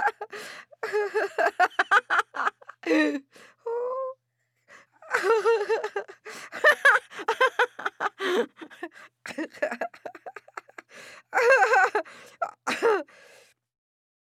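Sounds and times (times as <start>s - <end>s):
women laughing: 0.0s - 3.2s, 5.0s - 13.1s.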